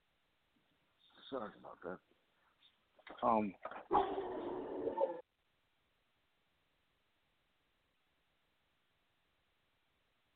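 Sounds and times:
speech: 0:01.3 - 0:02.2, 0:03.1 - 0:05.2
dog barking and whimpering: 0:03.9 - 0:05.2.

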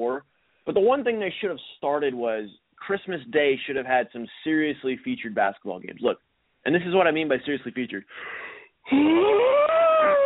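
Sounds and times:
speech: 0:00.0 - 0:09.8
person yawning: 0:08.9 - 0:10.2.

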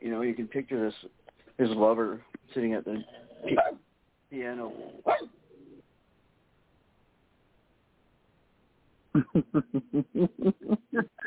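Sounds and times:
speech: 0:00.2 - 0:05.4, 0:09.2 - 0:11.2
small dog yapping: 0:03.0 - 0:03.8, 0:05.0 - 0:05.3
laughter: 0:09.2 - 0:11.0.

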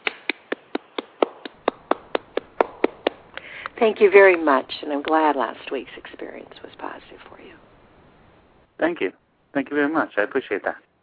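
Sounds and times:
hand clapping: 0:00.0 - 0:05.2
speech: 0:03.8 - 0:07.7, 0:08.8 - 0:10.8.

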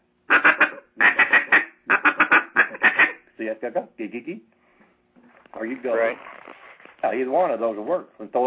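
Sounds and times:
duck call blown to imitate a duck's quack: 0:00.3 - 0:03.3
speech: 0:03.4 - 0:04.6, 0:05.5 - 0:06.3, 0:07.0 - 0:08.4.

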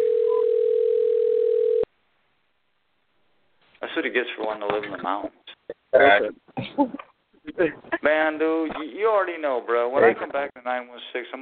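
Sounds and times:
telephone tone: 0:00.0 - 0:01.9
speech: 0:04.0 - 0:05.4, 0:06.0 - 0:11.3.

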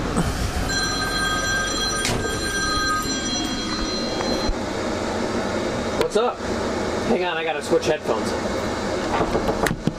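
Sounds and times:
constant noisy rumble: 0:00.0 - 0:09.2
speech: 0:00.2 - 0:00.4, 0:06.2 - 0:09.7
phone ringing with high electronic tone: 0:00.7 - 0:04.6.

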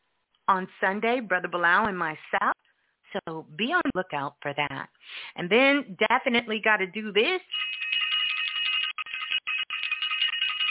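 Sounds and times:
speech: 0:00.5 - 0:07.7
bell ringing: 0:07.5 - 0:10.6.

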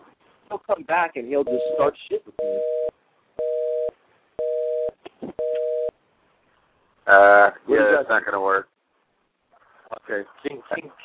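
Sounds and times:
speech: 0:00.5 - 0:02.8, 0:07.1 - 0:08.7, 0:10.1 - 0:11.0
telephone off-hook tone: 0:01.5 - 0:05.9.

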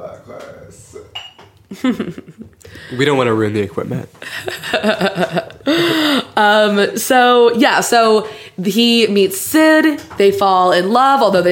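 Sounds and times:
glassware clinking: 0:01.1 - 0:01.6
laughter: 0:01.7 - 0:02.6, 0:04.2 - 0:06.5
speech: 0:01.7 - 0:11.5.

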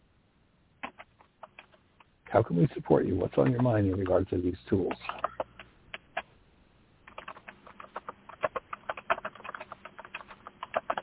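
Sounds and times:
loud computer keyboard typing: 0:00.8 - 0:01.8, 0:04.8 - 0:06.3, 0:07.0 - 0:11.0
speech: 0:02.3 - 0:05.2.

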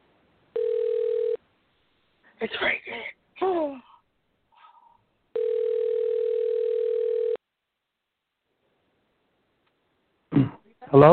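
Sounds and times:
telephone ringback beep: 0:00.6 - 0:01.4, 0:05.4 - 0:07.4
speech: 0:02.4 - 0:03.9, 0:11.0 - 0:11.1.

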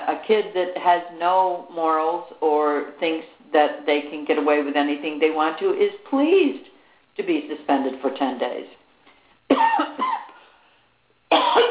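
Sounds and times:
speech: 0:00.3 - 0:08.8
person coughing during a morning allergy attack: 0:09.5 - 0:10.4, 0:11.3 - 0:11.6.

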